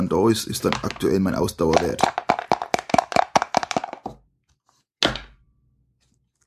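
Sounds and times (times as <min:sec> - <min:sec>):
speech: 0:00.0 - 0:02.2
die rattling across a hard table: 0:00.6 - 0:04.2.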